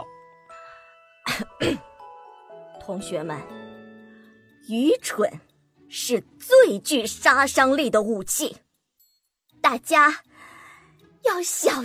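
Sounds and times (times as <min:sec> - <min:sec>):
throat clearing: 0:01.3 - 0:01.9
speech: 0:01.6 - 0:01.9, 0:02.9 - 0:03.6, 0:04.6 - 0:08.6, 0:09.6 - 0:10.3, 0:11.2 - 0:11.8.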